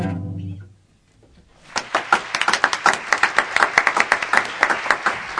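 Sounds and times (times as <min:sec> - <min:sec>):
audience applause: 0:01.6 - 0:05.3.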